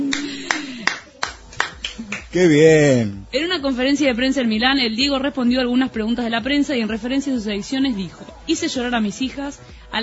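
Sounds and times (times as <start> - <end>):
hand claps: 0.0 - 2.4
speech: 2.3 - 10.0.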